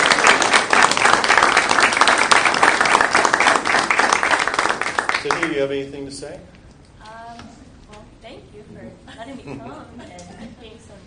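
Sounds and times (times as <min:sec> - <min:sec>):
audience applause: 0:00.0 - 0:05.8
speech: 0:05.2 - 0:06.6, 0:08.7 - 0:11.0.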